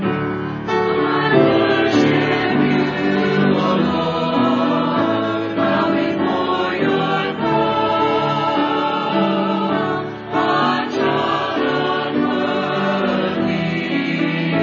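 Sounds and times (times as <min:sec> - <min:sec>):
choir singing: 0:00.1 - 0:14.6.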